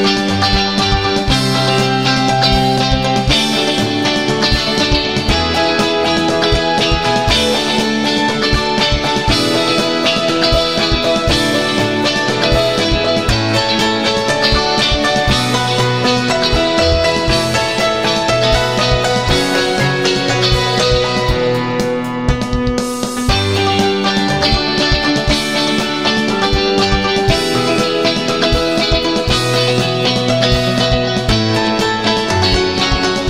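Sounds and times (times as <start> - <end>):
piano music: 0.0 - 33.2.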